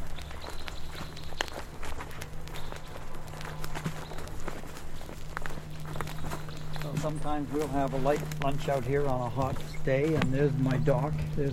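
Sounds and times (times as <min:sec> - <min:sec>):
constant low hum: 0:00.0 - 0:11.5
footsteps walking outdoors: 0:00.0 - 0:11.5
speech: 0:07.0 - 0:11.5.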